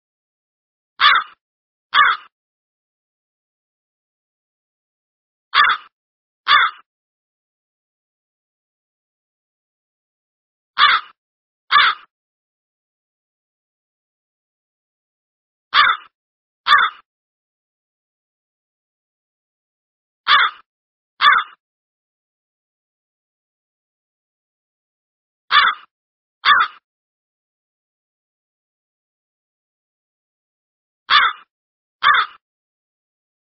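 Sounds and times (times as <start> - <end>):
crow cawing: 1.0 - 2.3, 5.5 - 5.9, 6.5 - 6.9, 10.8 - 12.1, 15.8 - 16.1, 16.7 - 17.1, 20.3 - 21.6, 25.5 - 26.8, 31.1 - 32.4.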